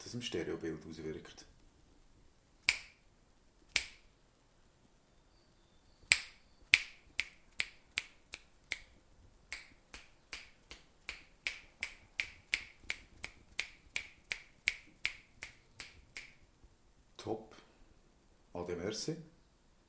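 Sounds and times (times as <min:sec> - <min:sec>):
speech: 0:00.1 - 0:01.5, 0:18.9 - 0:19.3
finger snaps left, centre and right: 0:02.6 - 0:03.1, 0:03.7 - 0:04.1, 0:06.1 - 0:16.4.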